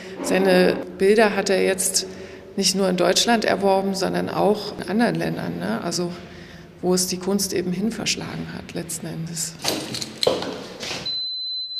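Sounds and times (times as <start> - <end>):
speech: 0.2 - 10.6
alarm system beeping: 11.1 - 11.7.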